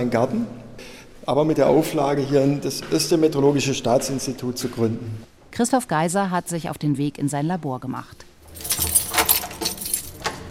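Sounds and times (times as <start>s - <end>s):
speech: 0.0s - 0.6s, 1.3s - 8.8s
keys jangling and scraping in a heavy door lock: 8.4s - 10.4s.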